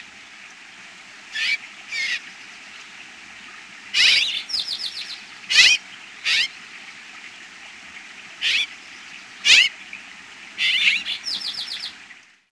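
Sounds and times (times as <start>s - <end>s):
bird calls in North America: 1.3s - 2.9s, 3.9s - 6.6s, 8.4s - 9.9s, 10.6s - 12.0s.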